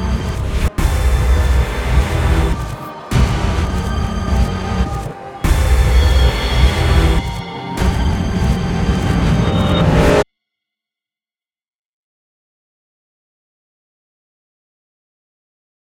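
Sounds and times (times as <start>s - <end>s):
spooky music: 0.0s - 10.2s.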